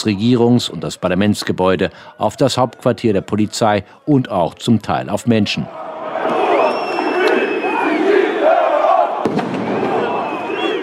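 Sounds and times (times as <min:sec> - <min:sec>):
protest crowd of demonstrators: 0:00.0 - 0:04.3, 0:05.3 - 0:10.8
speech: 0:00.0 - 0:06.4.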